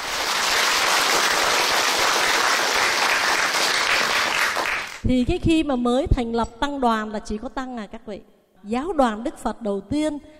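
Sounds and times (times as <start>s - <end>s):
crowd applauding: 0.0s - 5.0s
speech: 5.1s - 10.3s.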